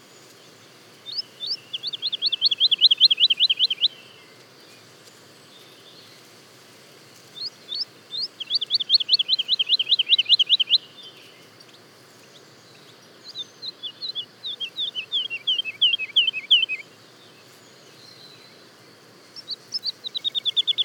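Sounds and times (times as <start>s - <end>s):
Woodlark song with fluty looped notes: 1.1s - 4.4s, 7.4s - 18.6s, 19.3s - 20.8s.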